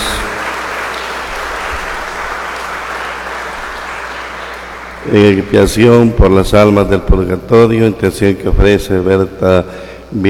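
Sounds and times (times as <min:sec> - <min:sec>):
crowd applause: 0:00.0 - 0:05.1
speech: 0:05.1 - 0:10.2.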